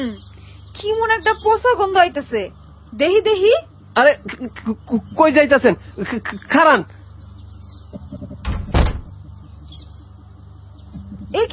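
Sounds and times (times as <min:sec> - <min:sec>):
speech: 0:00.0 - 0:07.0, 0:11.3 - 0:11.5
door being shut: 0:08.2 - 0:09.2.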